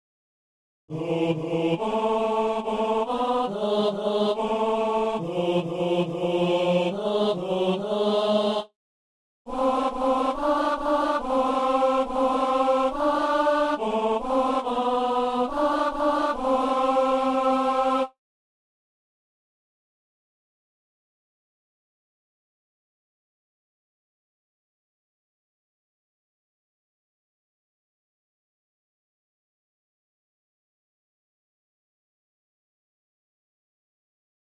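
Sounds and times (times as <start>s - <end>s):
tenor singing: 0.9s - 8.7s, 9.5s - 18.1s.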